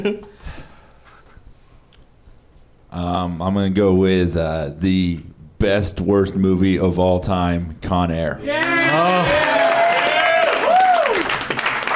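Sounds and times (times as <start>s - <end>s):
speech: 0.0s - 0.4s, 2.9s - 9.4s
audience applause and cheering: 8.5s - 11.9s.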